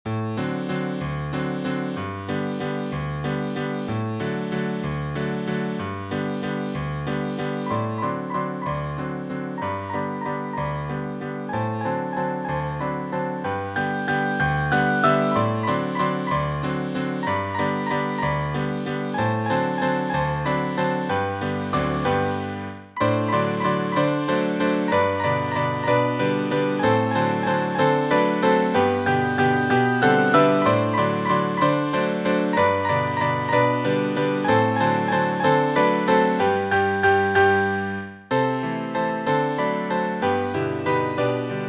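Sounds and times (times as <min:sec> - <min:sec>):
waltz music: 0:00.2 - 0:41.6.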